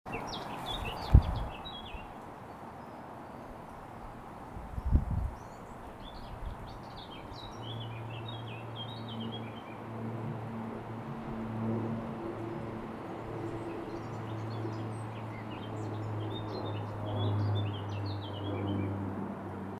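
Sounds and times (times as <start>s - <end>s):
outdoor ambience recorded with Zoom H4n: 0.1s - 19.7s.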